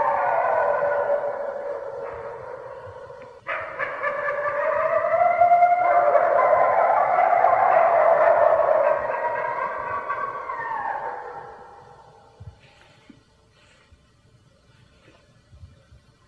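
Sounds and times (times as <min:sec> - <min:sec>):
red wolf howling: 0:00.0 - 0:12.4.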